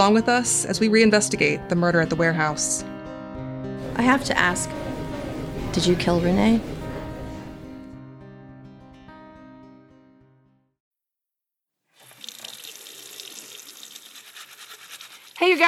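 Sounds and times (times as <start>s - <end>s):
speech: 0.0s - 3.0s, 4.0s - 4.9s, 5.8s - 6.8s
music: 0.0s - 10.8s
water running from a tap while washing hands: 12.0s - 15.6s.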